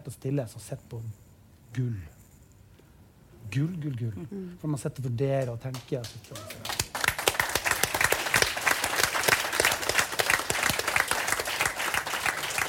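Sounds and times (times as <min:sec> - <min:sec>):
speech: 0:00.1 - 0:02.2, 0:03.4 - 0:06.9
audience applause: 0:06.4 - 0:12.6.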